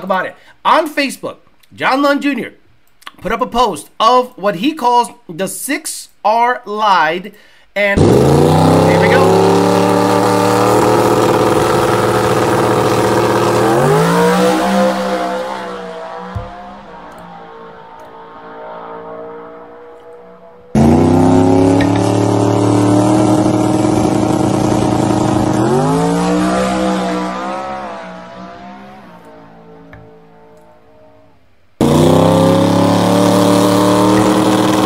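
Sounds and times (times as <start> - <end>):
speech: 0.0 - 2.6, 3.2 - 11.6
car engine revving: 8.0 - 34.8.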